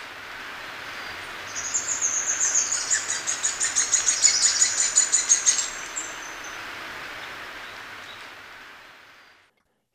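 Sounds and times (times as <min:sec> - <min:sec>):
Red-faced Spinetail calling in South America: 0:00.6 - 0:08.4.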